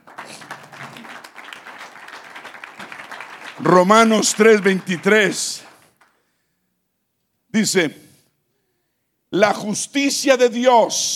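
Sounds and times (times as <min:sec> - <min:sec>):
audience applause: 0:00.0 - 0:06.2
speech: 0:03.6 - 0:05.7, 0:07.6 - 0:08.1, 0:09.3 - 0:11.1.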